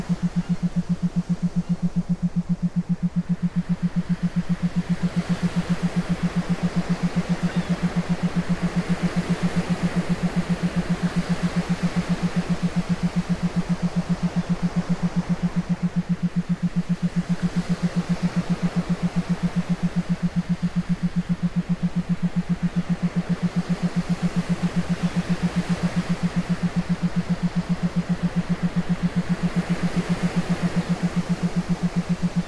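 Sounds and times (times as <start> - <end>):
theta binaural beats for meditation: 0.0 - 32.4.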